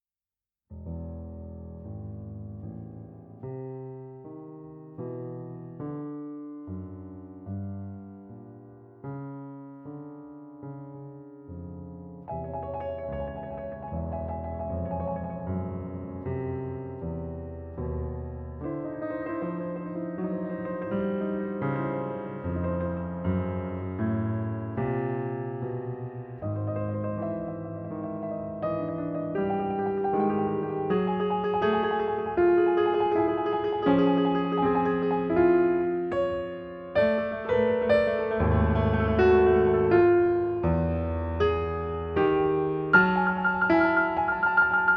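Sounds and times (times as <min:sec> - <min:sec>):
prelude music: 0:00.7 - 0:44.9.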